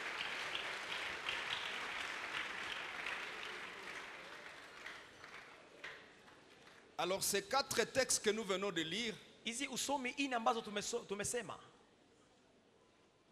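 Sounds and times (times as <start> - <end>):
church congregation clapping for the Lord during a service: 0.0 - 7.4
speech: 7.0 - 11.7.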